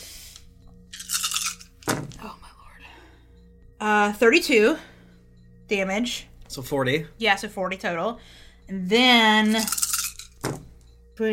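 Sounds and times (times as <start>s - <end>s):
speech: 3.8s - 4.9s, 5.7s - 9.8s, 11.2s - 11.3s
many dice being rolled: 9.5s - 10.6s.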